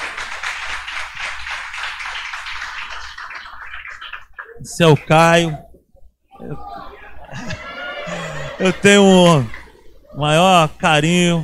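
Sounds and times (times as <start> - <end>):
applause: 0.0 - 4.6
speech: 4.6 - 5.7, 8.6 - 9.6, 10.2 - 11.4
laughter: 6.3 - 9.9.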